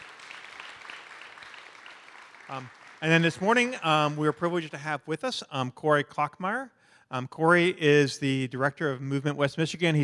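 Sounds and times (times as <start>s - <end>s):
faint applause from a gathered audience welcoming a speaker: 0.0s - 4.7s
speech: 2.5s - 10.0s.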